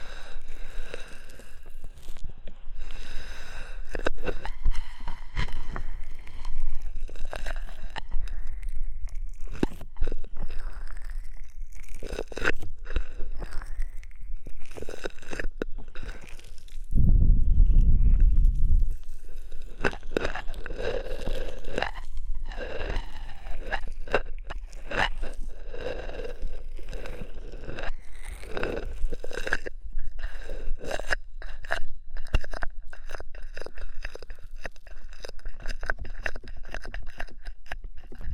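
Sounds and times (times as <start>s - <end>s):
crackling and squishing of ear massage with oil and foam: 0.0s - 38.3s
low rumble: 16.9s - 20.9s.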